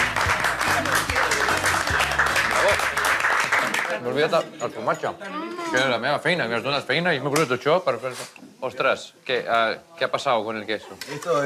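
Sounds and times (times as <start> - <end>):
applause for the grill cook: 0.0 - 4.1
speech: 4.0 - 11.4.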